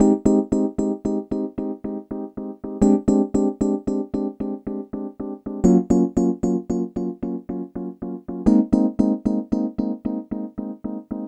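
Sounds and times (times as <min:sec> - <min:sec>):
Rhodes electric piano: 0:00.0 - 0:11.2.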